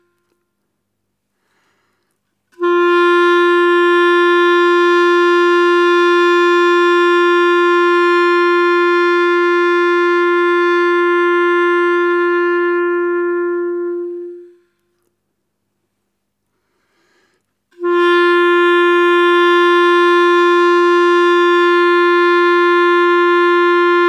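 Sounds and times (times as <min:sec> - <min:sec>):
clarinet tuning: 0:02.6 - 0:14.8, 0:17.8 - 0:24.0.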